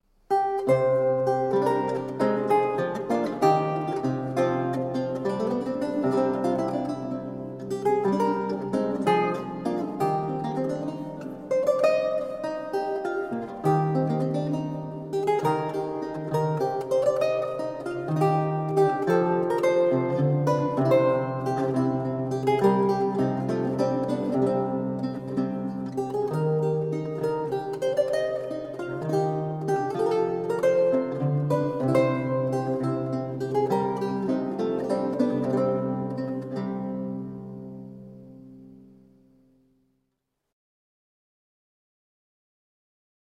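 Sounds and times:
lute music: 0:00.2 - 0:39.6.

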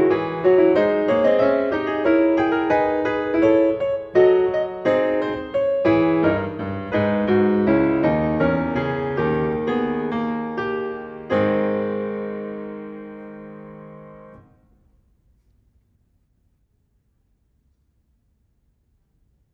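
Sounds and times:
clavier prelude and fugue: 0:00.0 - 0:14.4.

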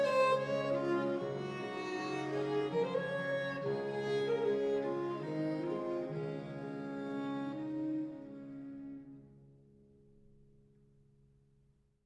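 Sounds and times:
trio sonata: 0:00.0 - 0:09.3.

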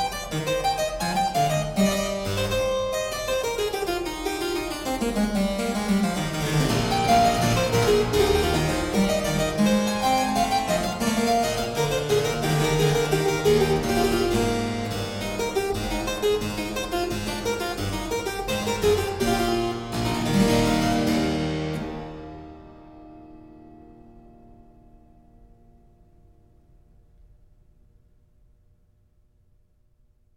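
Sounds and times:
harpsichord suite in E minor: 0:00.0 - 0:23.9.

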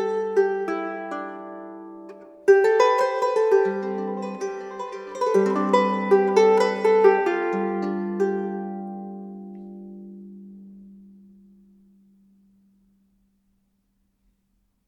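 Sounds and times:
harp improvisation in G mode: 0:00.0 - 0:10.8.

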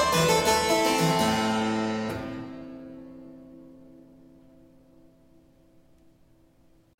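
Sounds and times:
baroque suite movement in B minor: 0:00.0 - 0:02.9.

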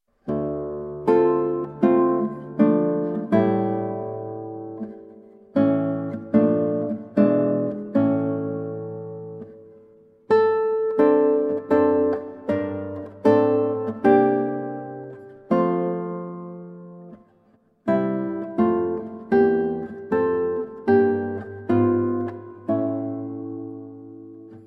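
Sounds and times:
prelude in D minor: 0:00.2 - 0:24.6.

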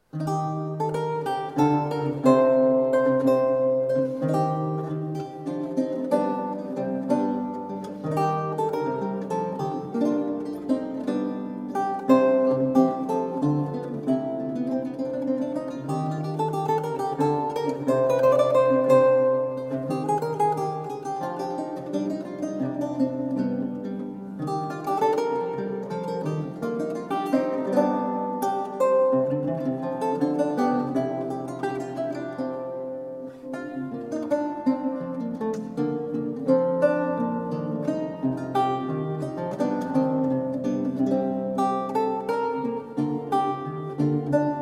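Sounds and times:
galliard played on a lute: 0:00.0 - 0:44.5.

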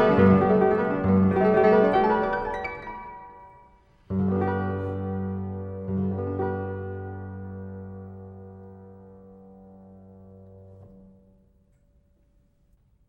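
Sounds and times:
piano prelude in G major: 0:00.0 - 0:11.6.

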